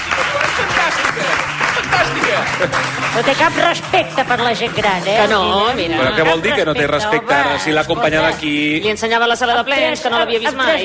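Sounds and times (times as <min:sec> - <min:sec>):
audience applause at a gathering: 0:00.0 - 0:04.8
speech: 0:02.6 - 0:10.8.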